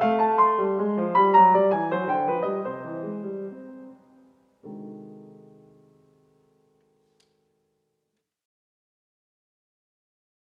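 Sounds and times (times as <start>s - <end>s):
short piano pieces: 0.0s - 7.8s.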